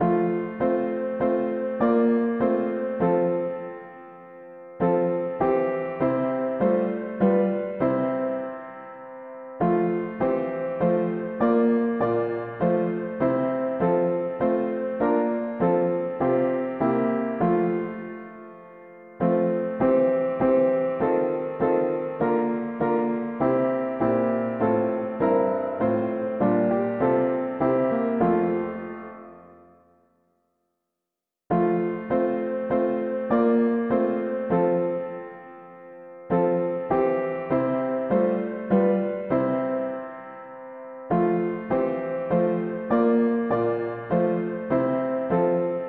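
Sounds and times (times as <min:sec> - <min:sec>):
mono piano: 0:00.0 - 0:30.2, 0:31.5 - 0:45.8.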